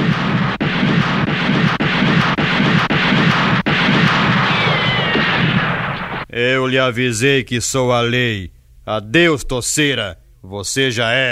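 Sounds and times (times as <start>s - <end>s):
gunfire in a shootout: 0.0s - 6.3s
thin whine: 0.0s - 6.4s
speech: 6.4s - 11.3s.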